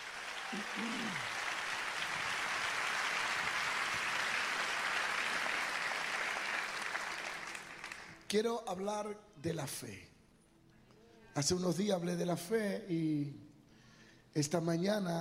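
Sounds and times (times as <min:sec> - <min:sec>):
audience applause: 0:00.0 - 0:08.2
speech: 0:00.5 - 0:01.4, 0:08.3 - 0:10.1, 0:11.4 - 0:13.5, 0:14.3 - 0:15.1.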